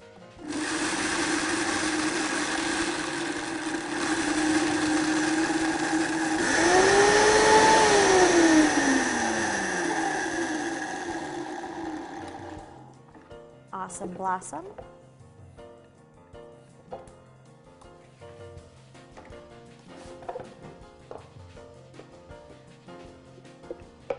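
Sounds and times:
high-speed blender running on low: 0:00.4 - 0:13.0
speech: 0:14.2 - 0:15.0.

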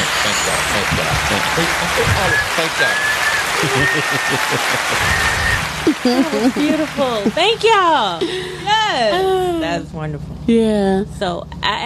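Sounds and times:
laughter: 0:00.0 - 0:02.9, 0:03.6 - 0:09.8
audience applause: 0:00.0 - 0:07.8
voices calling out: 0:00.0 - 0:10.0
speech: 0:01.3 - 0:11.8.

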